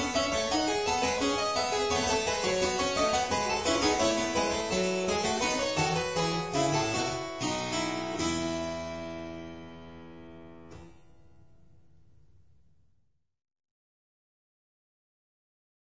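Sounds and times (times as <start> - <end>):
sinfonia in F major: 0.0 - 10.6.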